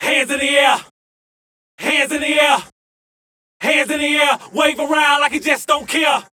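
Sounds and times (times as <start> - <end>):
vocals: 0.0 - 0.9, 1.8 - 2.8, 3.6 - 6.3.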